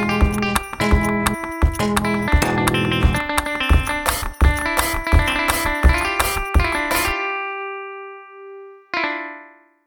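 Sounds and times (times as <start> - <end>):
alternative rock music: 0.0 - 7.2.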